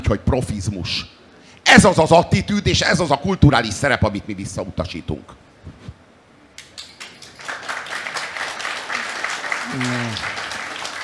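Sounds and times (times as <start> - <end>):
speech: 0.1 - 5.8
clapping applause: 6.6 - 11.0.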